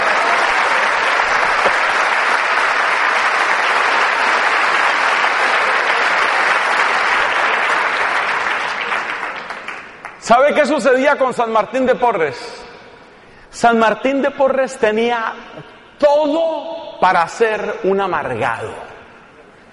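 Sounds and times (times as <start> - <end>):
crowd applauding: 0.0 - 10.3
speech: 10.3 - 12.6, 13.6 - 18.9.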